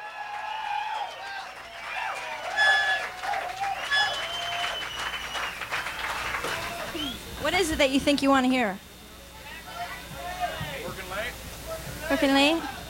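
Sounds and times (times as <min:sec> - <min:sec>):
crowd applauding: 0:00.0 - 0:07.3
whistles and cheers: 0:00.0 - 0:07.3
speech: 0:07.4 - 0:08.9, 0:12.1 - 0:12.8.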